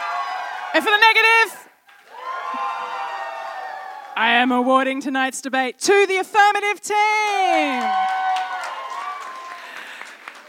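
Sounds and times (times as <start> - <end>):
audience applause for a winning debate team: 0.0 - 1.0, 1.9 - 4.2, 7.7 - 10.4
speech: 0.8 - 1.6, 4.2 - 8.2.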